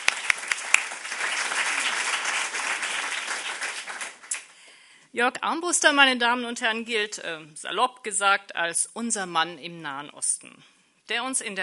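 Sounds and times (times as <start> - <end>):
audience applause: 0.0 - 4.6
speech: 5.2 - 11.6.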